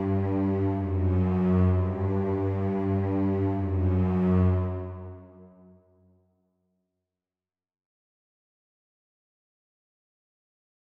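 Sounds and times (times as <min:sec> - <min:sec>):
slow strings: 0:00.0 - 0:05.8.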